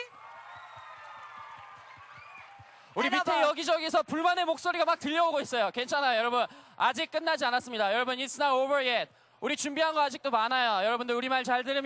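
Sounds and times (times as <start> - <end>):
audience applause: 0.0 - 3.4
speech: 3.0 - 11.8.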